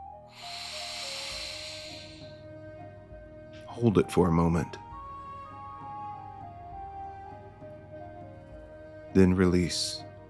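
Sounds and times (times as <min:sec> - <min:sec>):
faint sustained tonal hum: 0:00.0 - 0:10.2
deep breath in: 0:00.3 - 0:02.6
speech: 0:03.8 - 0:04.8, 0:09.2 - 0:10.1.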